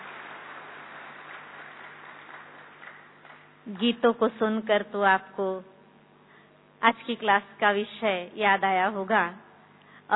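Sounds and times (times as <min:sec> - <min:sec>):
audience applause welcoming a speaker at a spiritual class: 0:00.0 - 0:03.6
speech: 0:03.7 - 0:05.7, 0:06.8 - 0:09.4.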